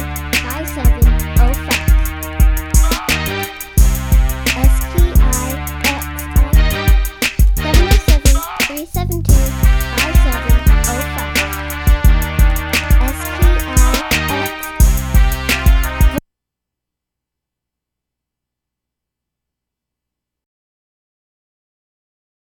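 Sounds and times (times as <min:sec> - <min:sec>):
crunk music: 0:00.0 - 0:16.2.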